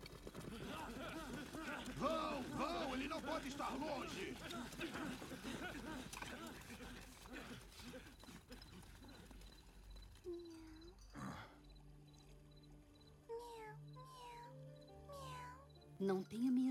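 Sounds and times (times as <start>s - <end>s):
laughter: 0.4s - 9.7s
speech: 0.6s - 8.2s, 16.0s - 16.6s
cat meowing: 13.4s - 15.7s.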